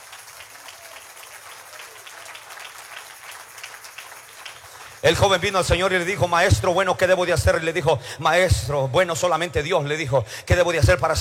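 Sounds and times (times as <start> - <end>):
audience applauding: 0.0 - 6.2
speech: 5.0 - 11.1.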